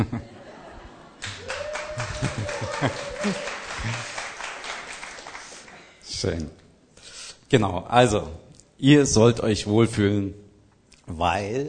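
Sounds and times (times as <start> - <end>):
laughter: 0.0 - 4.5
audience applause: 1.2 - 5.9
speech: 2.8 - 3.4, 6.2 - 6.6, 7.5 - 10.4, 11.1 - 11.6.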